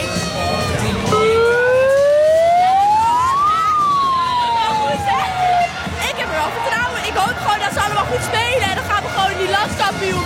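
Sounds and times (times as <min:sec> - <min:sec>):
crowd murmur: 0:00.0 - 0:10.2
supporters making a siren-like wail: 0:01.1 - 0:06.0.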